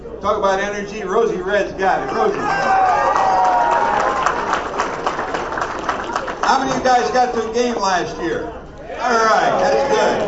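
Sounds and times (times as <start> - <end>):
speech: 0.2 - 3.6, 6.5 - 10.2
crowd cheering with whoops and whistles: 2.0 - 7.2, 8.9 - 10.2
crowd clapping: 2.2 - 7.3, 9.9 - 10.2.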